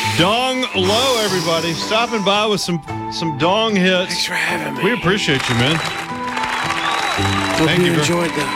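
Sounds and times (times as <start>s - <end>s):
speech: 0.2s - 6.1s, 7.2s - 8.5s
crowd applause: 5.2s - 8.5s.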